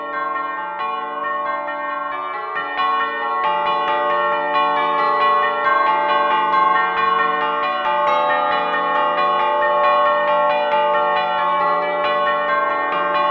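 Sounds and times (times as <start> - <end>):
bells in 36-EDO microtonal tuning: 0.0 - 13.2.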